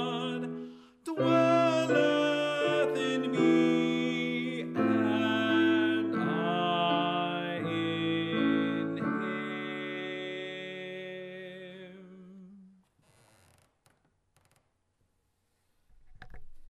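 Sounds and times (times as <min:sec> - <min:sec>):
tenor voice: 0:00.0 - 0:12.0.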